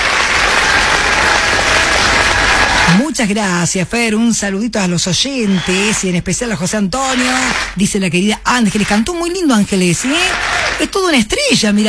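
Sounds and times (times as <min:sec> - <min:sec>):
audience clapping after a song: 0:00.0 - 0:03.0, 0:05.5 - 0:06.2, 0:07.0 - 0:11.1
speech: 0:02.9 - 0:11.8.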